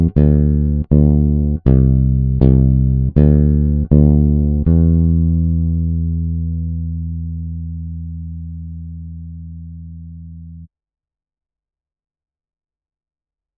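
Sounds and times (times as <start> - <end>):
80 bpm bass: 0.0 - 10.7.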